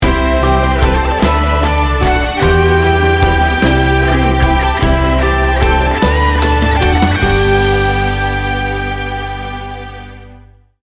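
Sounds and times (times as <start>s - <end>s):
music sting bumper: 0.0s - 10.4s.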